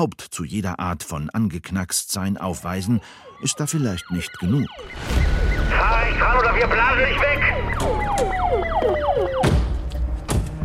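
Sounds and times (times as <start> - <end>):
speech: 0.0 - 9.5
police car siren yelping: 2.4 - 9.6.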